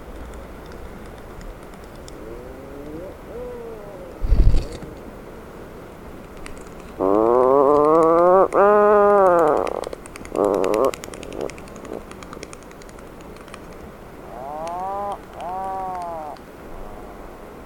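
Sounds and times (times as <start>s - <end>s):
Atlantic puffin groaning calls: 2.1s - 4.8s, 6.9s - 12.1s, 14.2s - 17.3s.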